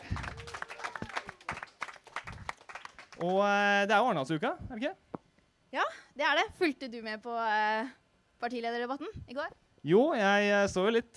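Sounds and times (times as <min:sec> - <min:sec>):
audience applause: 0:00.0 - 0:03.6
speech: 0:03.2 - 0:05.1, 0:05.7 - 0:11.1.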